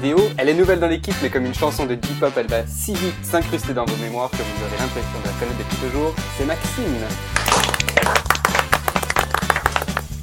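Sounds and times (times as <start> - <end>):
speech: 0.0 - 8.1
person clapping: 7.3 - 10.2.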